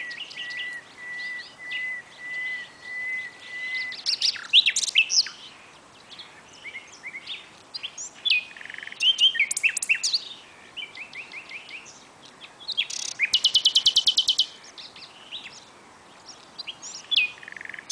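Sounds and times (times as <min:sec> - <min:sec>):
Common nightingale Luscinia megarhynchos singing: 0:00.0 - 0:17.9.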